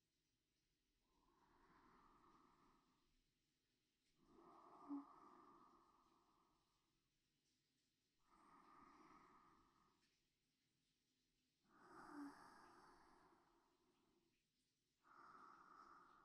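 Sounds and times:
sleep breathing: 0:01.0 - 0:03.2, 0:04.0 - 0:07.0, 0:08.1 - 0:10.3, 0:11.6 - 0:16.2.

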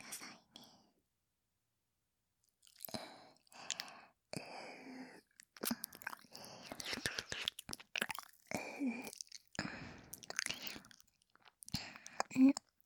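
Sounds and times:
ear licking ASMR: 0:02.6 - 0:03.9, 0:05.4 - 0:12.8.

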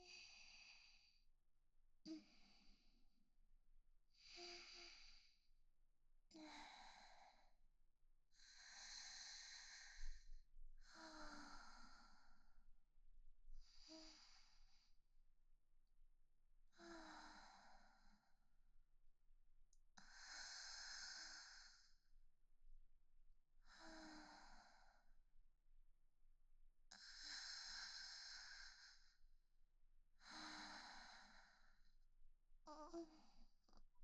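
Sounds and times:
woman breathing calmly in sleep beside her boyfriend: 0:00.0 - 0:01.2, 0:02.1 - 0:03.0, 0:04.2 - 0:05.5, 0:06.3 - 0:07.6, 0:08.4 - 0:12.6, 0:13.6 - 0:15.0, 0:16.7 - 0:18.4, 0:20.0 - 0:22.1, 0:23.6 - 0:25.1, 0:26.9 - 0:29.2, 0:30.2 - 0:31.9, 0:32.7 - 0:33.5.

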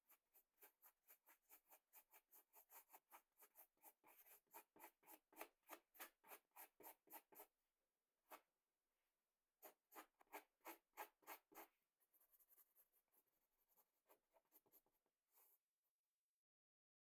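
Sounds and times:
pencil drawing a picture, ASMR: 0:00.6 - 0:07.5, 0:09.6 - 0:13.0.

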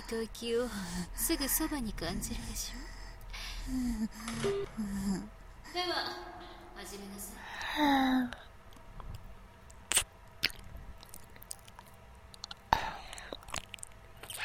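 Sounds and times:
speech: 0:00.1 - 0:03.0, 0:03.6 - 0:08.4
gentle biting: 0:08.7 - 0:14.4
ear licking: 0:09.9 - 0:14.4.

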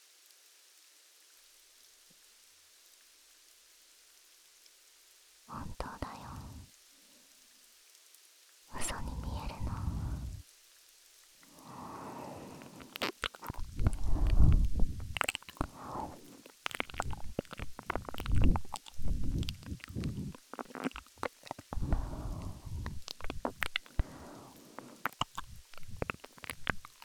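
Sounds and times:
ASMR ear licking sounds: 0:08.7 - 0:10.4, 0:11.4 - 0:27.0.

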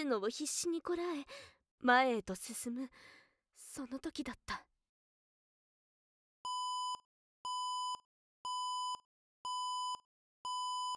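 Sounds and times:
speech: 0:00.0 - 0:04.7
loud harsh electronic alarm beeping: 0:06.5 - 0:10.9.

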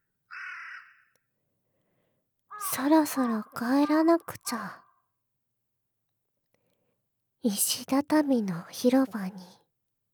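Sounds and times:
crow cawing at dusk: 0:00.3 - 0:01.1, 0:02.5 - 0:04.2
speech: 0:02.8 - 0:04.8, 0:07.4 - 0:09.6.

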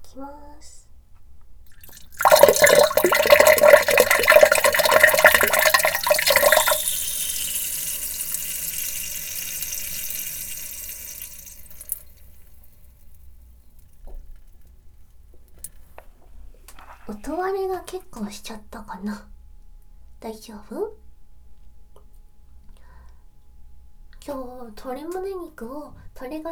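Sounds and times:
speech: 0:00.2 - 0:00.8, 0:18.2 - 0:19.4, 0:20.2 - 0:21.0, 0:24.3 - 0:26.5
person urinating close to the microphone: 0:01.7 - 0:12.6.

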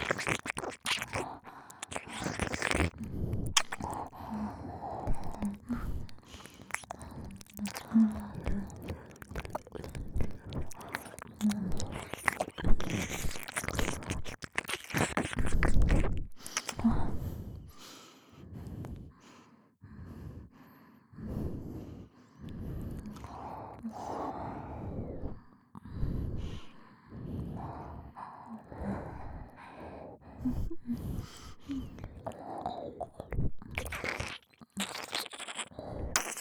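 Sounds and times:
ear licking: 0:00.0 - 0:16.9, 0:28.5 - 0:36.3
double nose breathing: 0:00.0 - 0:36.3.

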